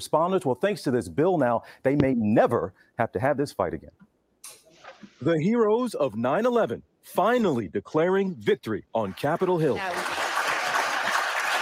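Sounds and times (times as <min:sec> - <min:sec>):
speech: 0:00.0 - 0:04.1, 0:05.2 - 0:10.1
Senate gallery crowd applause: 0:09.1 - 0:11.6.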